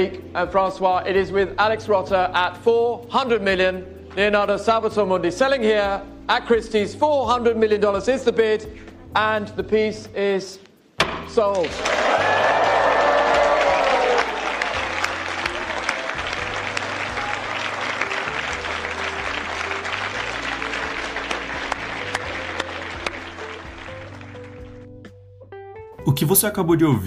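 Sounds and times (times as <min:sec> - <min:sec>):
speech: 0:00.0 - 0:10.6, 0:11.3 - 0:12.4, 0:26.3 - 0:27.0
applause in auction room after sale: 0:11.6 - 0:24.8
scattered cheers: 0:11.7 - 0:15.0.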